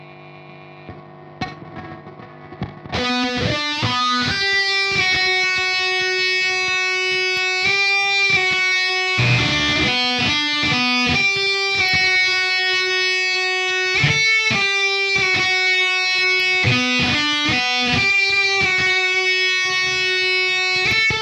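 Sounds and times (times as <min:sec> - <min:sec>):
guitar solo: 0:02.6 - 0:21.2.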